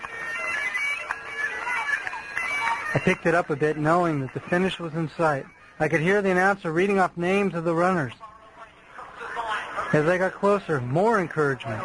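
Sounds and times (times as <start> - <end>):
bagpipes playing: 0.0 - 7.8
speech: 2.9 - 8.2, 9.9 - 11.8.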